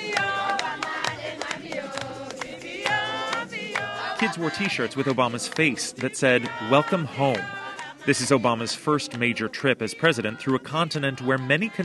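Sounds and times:
crowds of people singing songs about Obama: 0:00.0 - 0:11.8
speech: 0:04.2 - 0:11.8.

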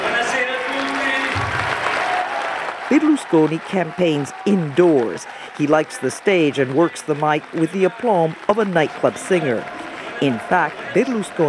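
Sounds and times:
crowd applause from Berlusconi's followers at a rally in a luxury Roman hotel: 0:00.0 - 0:11.4
speech: 0:02.9 - 0:11.4.

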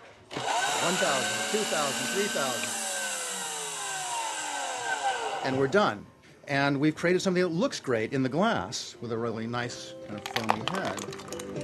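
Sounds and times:
blender flash blending crushed ice: 0:00.3 - 0:05.7
speech: 0:00.9 - 0:02.8, 0:05.4 - 0:11.6.

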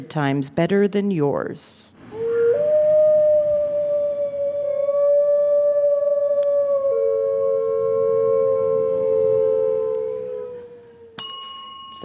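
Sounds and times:
speech: 0:00.0 - 0:02.0
gray wolf howling: 0:02.1 - 0:11.2.

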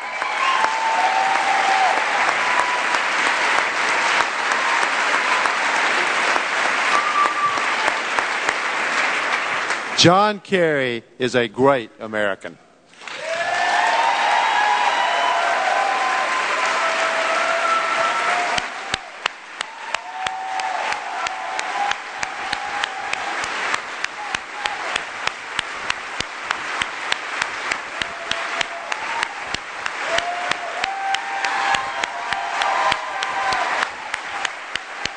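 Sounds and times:
crowd cheers and whistles: 0:00.0 - 0:08.2, 0:13.0 - 0:25.1, 0:27.8 - 0:35.1
large crowd standing ovation applause: 0:00.0 - 0:10.1, 0:12.9 - 0:35.1
speech: 0:10.0 - 0:12.6.

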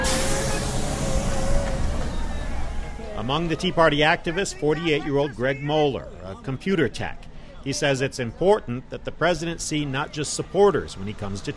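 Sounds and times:
president's bus turning a corner and rolling past: 0:00.0 - 0:05.9, 0:08.6 - 0:11.5
speech: 0:03.2 - 0:11.5.

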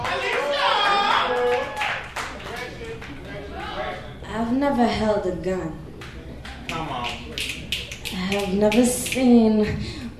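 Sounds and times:
audience clapping: 0:00.0 - 0:03.3, 0:06.0 - 0:09.3
speech: 0:04.5 - 0:05.9, 0:08.3 - 0:10.0.

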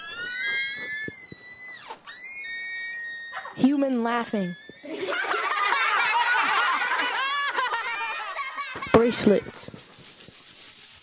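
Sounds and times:
door squeaking: 0:00.0 - 0:05.4
speech: 0:03.6 - 0:05.1, 0:09.0 - 0:09.8
laughter: 0:04.8 - 0:09.1.

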